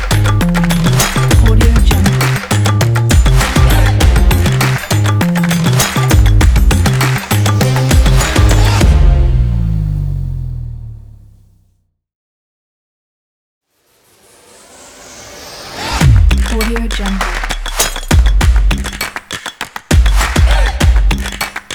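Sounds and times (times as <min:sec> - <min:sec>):
percussion: 0:00.0 - 0:10.0, 0:14.9 - 0:21.7.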